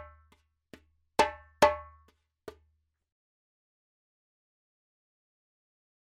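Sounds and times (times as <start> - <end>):
djembe drumming: 1.2 - 1.9.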